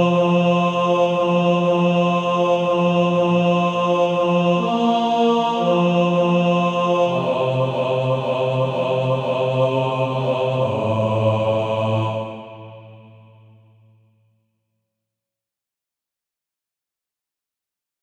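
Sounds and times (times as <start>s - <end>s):
male choir bass section singing: 0.0s - 13.7s.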